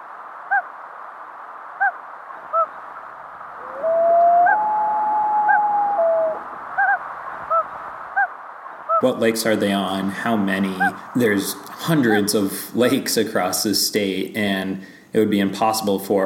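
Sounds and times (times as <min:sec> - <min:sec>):
Common Loon wailing: 0:03.6 - 0:08.3, 0:11.9 - 0:13.0
speech: 0:09.0 - 0:16.2.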